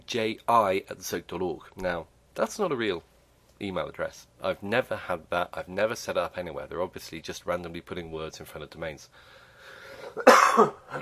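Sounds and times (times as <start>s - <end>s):
speech: 0.1s - 9.4s, 10.1s - 11.0s
person coughing: 10.0s - 11.0s.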